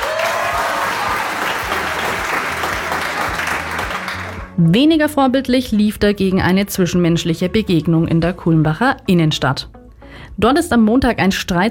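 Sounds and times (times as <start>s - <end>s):
applause: 0.0s - 4.6s
speech: 4.6s - 11.7s.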